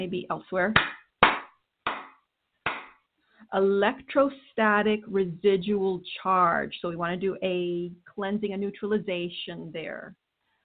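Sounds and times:
speech: 0:00.0 - 0:01.0, 0:03.5 - 0:10.2
hand claps to clear energy: 0:00.8 - 0:03.0.

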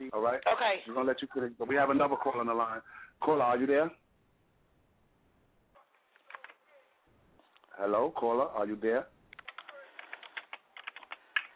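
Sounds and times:
speech: 0:00.1 - 0:04.0, 0:07.8 - 0:09.1
typing on a computer keyboard: 0:09.3 - 0:11.5.

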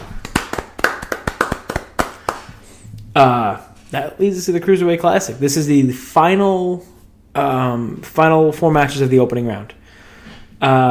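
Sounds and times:
hand clapping: 0:00.0 - 0:02.7
speech: 0:03.2 - 0:09.8, 0:10.6 - 0:10.8.

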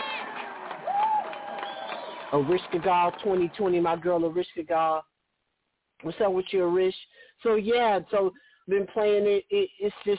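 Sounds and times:
high whoop: 0:00.0 - 0:02.3
crowd cheering and clapping: 0:00.0 - 0:04.0
speech: 0:02.3 - 0:05.1, 0:06.0 - 0:10.1.

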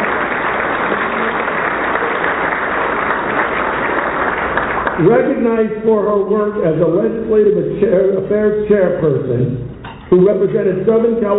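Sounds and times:
audience clapping: 0:00.0 - 0:05.4
speech: 0:05.0 - 0:11.3.

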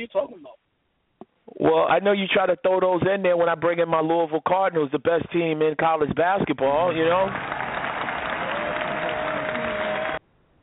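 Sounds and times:
speech: 0:00.0 - 0:00.6, 0:01.6 - 0:07.6
hand claps: 0:06.9 - 0:10.2.

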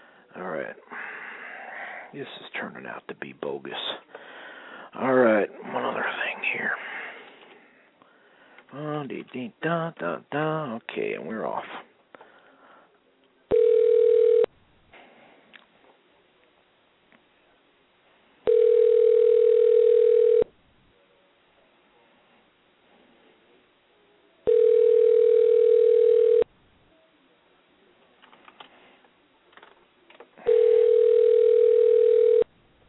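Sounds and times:
speech: 0:02.1 - 0:04.2, 0:04.9 - 0:07.0, 0:08.7 - 0:11.9
telephone ringing unanswered: 0:13.5 - 0:14.5, 0:18.5 - 0:20.5, 0:24.4 - 0:26.5, 0:30.4 - 0:32.5.

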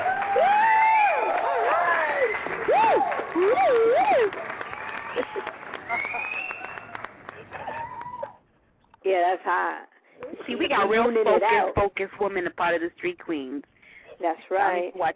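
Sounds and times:
audience clapping: 0:00.0 - 0:08.4
speech: 0:09.3 - 0:09.9, 0:10.5 - 0:15.1.

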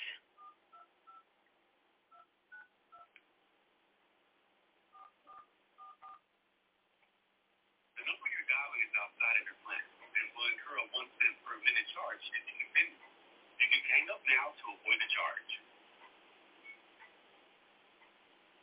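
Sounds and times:
phone keypad dialing tones: 0:05.0 - 0:06.2
voice over telephone line: 0:08.0 - 0:13.0, 0:13.6 - 0:15.6.

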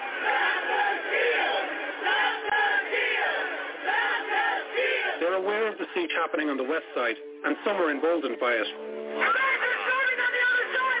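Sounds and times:
crowd of rioters shouting: 0:00.0 - 0:05.5, 0:09.2 - 0:10.9
speech: 0:05.7 - 0:09.4.

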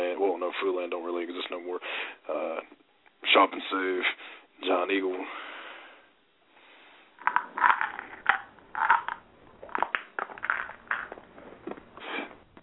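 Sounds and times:
speech: 0:00.4 - 0:05.5
pills being popped out of a plastic blister pack: 0:07.2 - 0:11.8.

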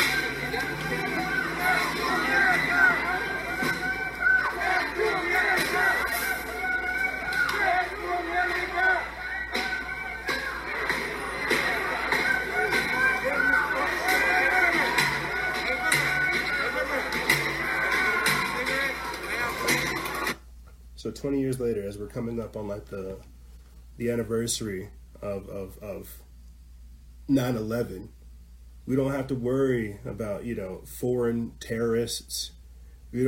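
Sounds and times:
crowd chanting: 0:00.0 - 0:20.4
speech: 0:21.2 - 0:23.4, 0:24.0 - 0:26.2, 0:27.3 - 0:28.2, 0:28.8 - 0:33.2.

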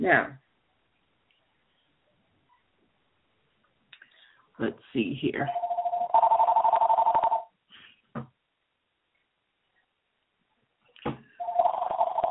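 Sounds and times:
speech: 0:00.0 - 0:00.4, 0:04.6 - 0:05.6
mobile phone ringing: 0:05.5 - 0:07.5, 0:11.4 - 0:12.2.

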